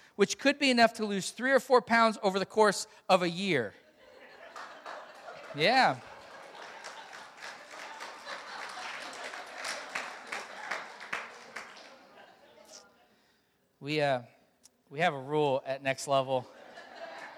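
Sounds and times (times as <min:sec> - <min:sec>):
speech: 0:00.2 - 0:03.8, 0:05.5 - 0:06.1, 0:13.8 - 0:14.3, 0:14.9 - 0:16.6
laughter: 0:03.8 - 0:13.1, 0:16.4 - 0:17.3
audience applause: 0:04.4 - 0:12.3.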